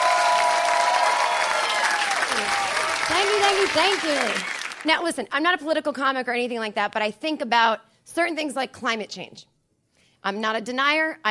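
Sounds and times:
audience applauding and cheering for comedian Jen Kirkman: 0.0 - 4.9
speech: 2.4 - 9.5, 10.2 - 11.2.

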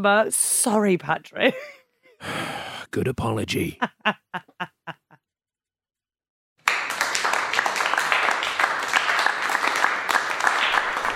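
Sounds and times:
speech: 0.0 - 4.8
laughter: 3.6 - 5.2
audience applause: 6.6 - 11.1.

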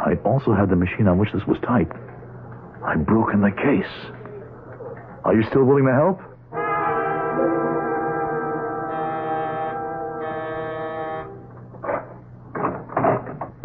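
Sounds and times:
speech: 0.3 - 2.2, 2.8 - 4.2, 5.2 - 6.3
doorbell ringing: 6.6 - 11.4.

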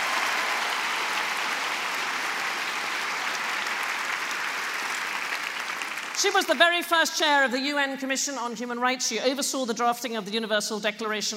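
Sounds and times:
audience applause: 0.0 - 6.6
speech: 6.2 - 11.3.

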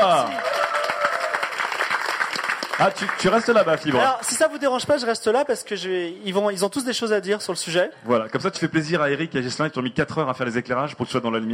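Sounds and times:
audience applause: 0.0 - 4.6
speech: 2.8 - 11.5.

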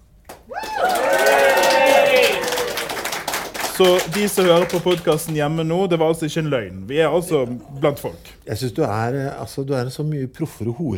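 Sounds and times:
live audience clapping: 0.2 - 5.8
audience making noise: 0.5 - 4.8
speech: 3.8 - 10.9.

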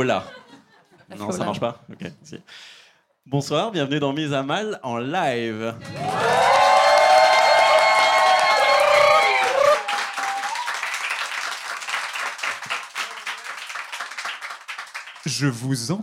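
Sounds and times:
speech: 0.0 - 0.4, 1.1 - 6.5, 15.3 - 16.0
live audience at a French comedy show cheering and whooping: 5.7 - 13.9
live audience applause at a French comedy show: 5.7 - 15.6.

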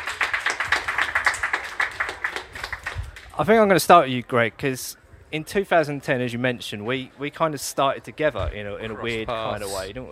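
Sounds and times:
round of applause: 0.0 - 3.4
speech: 3.4 - 10.1.

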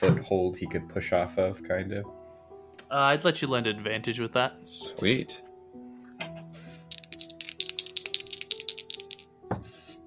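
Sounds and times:
speech: 0.0 - 2.2, 2.9 - 5.4
dice rolling: 6.9 - 9.3.

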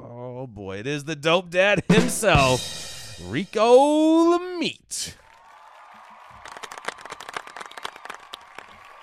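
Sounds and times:
speech: 0.5 - 5.2
soundboard golf clap: 5.2 - 9.0.

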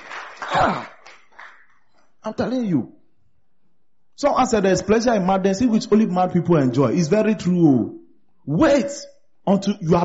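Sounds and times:
audience clapping: 0.0 - 2.0
speech: 0.4 - 0.9, 2.2 - 3.0, 4.2 - 10.0.

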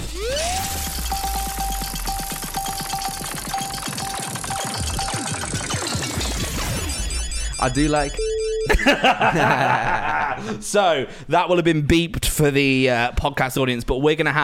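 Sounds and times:
whine of the spinning roulette wheel: 0.0 - 8.9
giant roulette wheel spinning: 1.0 - 6.0
speech: 7.6 - 14.4
laughter: 8.7 - 10.7.

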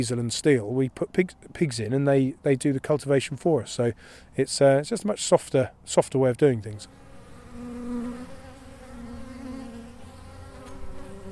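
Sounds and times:
speech: 0.0 - 7.0
honeybees buzzing around their hives: 6.7 - 11.3.

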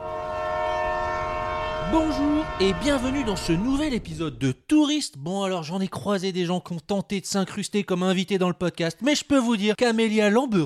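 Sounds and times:
departing train horn: 0.0 - 4.1
speech: 1.9 - 10.6.

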